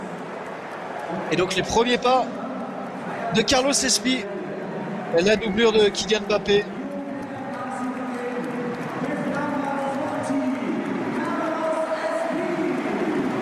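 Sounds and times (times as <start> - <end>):
stadium crowd clapping: 0.0 - 4.2, 4.8 - 13.4
speech: 1.3 - 2.4, 3.3 - 4.4, 5.1 - 6.8.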